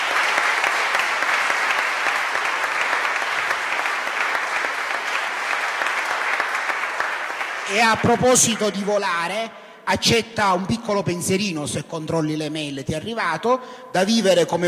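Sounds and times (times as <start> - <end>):
audience applause: 0.0 - 9.0
speech: 7.7 - 14.6.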